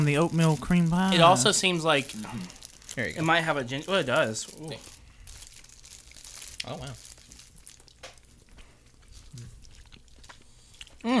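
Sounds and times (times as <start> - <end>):
speech: 0.0 - 5.0, 6.6 - 7.0
faint crinkling: 0.0 - 11.0
crunching and chewing of a ginger-tasting snack into the microphone: 0.2 - 11.1.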